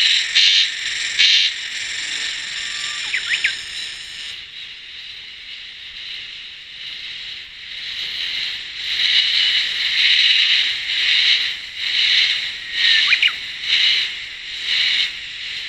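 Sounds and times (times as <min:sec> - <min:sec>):
insect producing high-pitched buzzing drone: 0:00.0 - 0:15.6.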